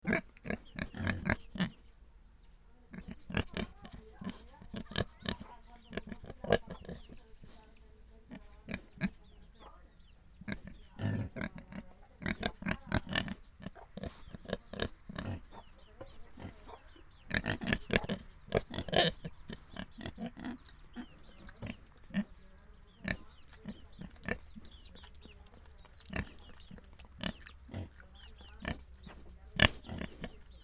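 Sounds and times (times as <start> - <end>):
pig grunting: 0.0 - 1.8, 2.9 - 7.2, 10.5 - 15.7, 16.3 - 25.0, 25.6 - 30.6.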